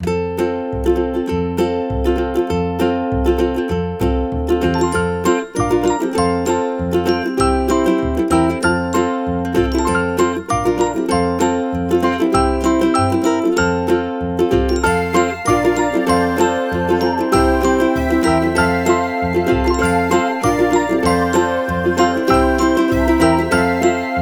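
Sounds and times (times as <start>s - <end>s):
quirky ukulele music: 0.0s - 24.1s.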